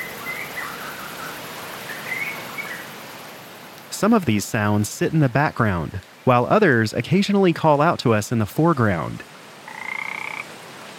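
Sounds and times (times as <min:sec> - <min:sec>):
birds chirping: 0:00.0 - 0:03.0
hissing outdoor ambience: 0:00.0 - 0:10.9
speech: 0:04.0 - 0:09.4.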